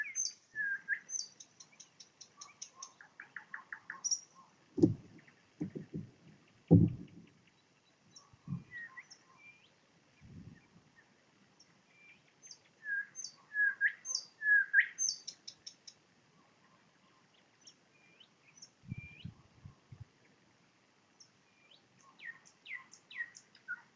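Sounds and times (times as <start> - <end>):
nightingale singing: 0.0 - 16.0, 17.0 - 19.9, 21.2 - 23.9
low thumping: 4.8 - 7.3.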